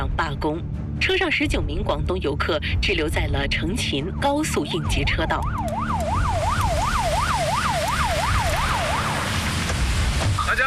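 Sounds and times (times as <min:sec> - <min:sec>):
speech: 0:00.2 - 0:06.0
police car siren: 0:04.0 - 0:09.7
engine and road noise: 0:04.1 - 0:10.6.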